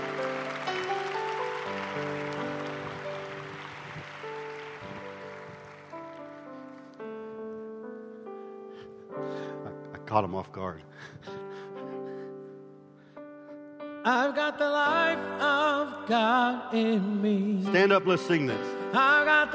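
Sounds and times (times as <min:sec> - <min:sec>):
audience applause: 0:00.0 - 0:07.0
speech: 0:10.1 - 0:11.2, 0:14.0 - 0:19.5.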